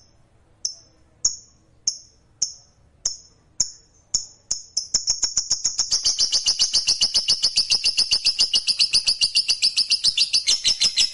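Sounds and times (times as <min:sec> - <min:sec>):
lovebird high rattling trill: 0:04.2 - 0:11.1.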